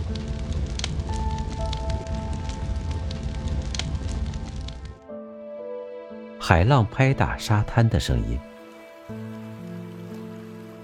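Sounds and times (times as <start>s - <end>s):
wood crackling as it burns in a fireplace: 0.0s - 5.1s, 8.5s - 10.8s
speech: 6.5s - 8.5s.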